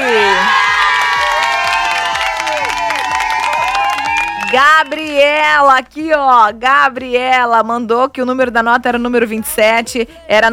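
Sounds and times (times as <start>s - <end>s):
crowd cheering and applause: 0.0s - 5.2s
speech: 4.9s - 10.5s.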